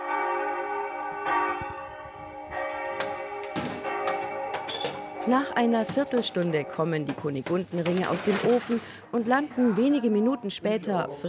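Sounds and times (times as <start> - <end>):
church bell ringing: 0.0 - 7.7
speech: 5.3 - 11.2.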